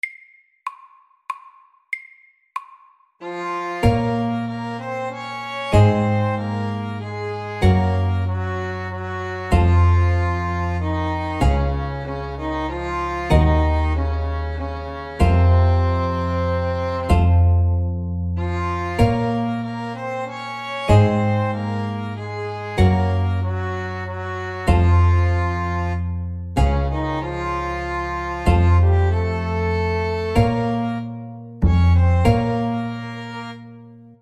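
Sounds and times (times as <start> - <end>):
folk tune: 3.2 - 34.2.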